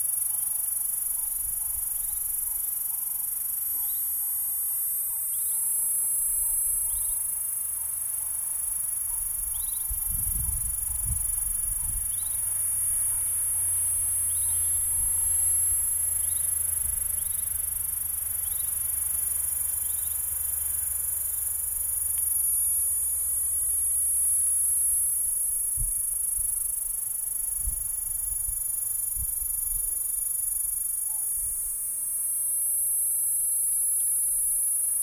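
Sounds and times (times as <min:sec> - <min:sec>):
P. catenata high buzz: 0:00.0 - 0:35.0.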